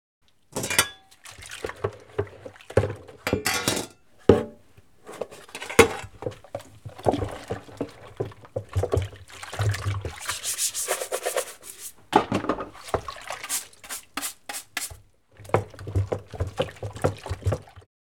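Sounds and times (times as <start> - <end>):
kitchen water during dish washing: 0.2 - 4.4, 5.0 - 17.9
dishes clanking: 0.6 - 1.1, 3.2 - 4.6.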